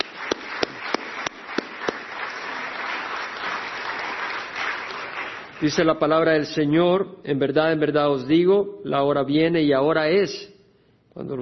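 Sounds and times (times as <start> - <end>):
audience applause: 0.0 - 5.8
speech: 5.6 - 10.5, 11.2 - 11.4.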